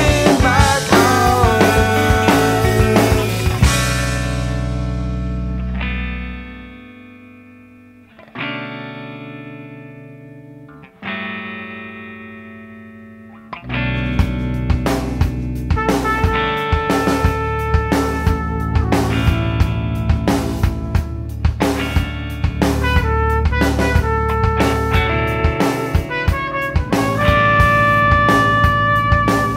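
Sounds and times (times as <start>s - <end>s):
person singing: 0.0s - 3.7s
math rock music: 0.0s - 29.5s.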